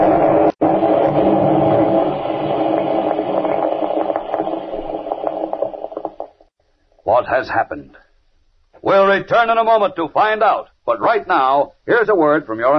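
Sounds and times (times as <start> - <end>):
tremendous explosion sound effect: 0.0 - 6.4
speech: 7.4 - 8.0, 8.9 - 12.7.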